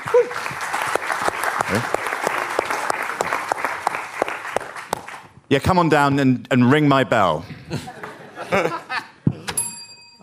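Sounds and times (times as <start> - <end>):
crowd clapping: 0.0 - 5.4
speech: 1.7 - 2.0, 5.5 - 7.9, 8.5 - 8.8
laughter: 7.4 - 9.5.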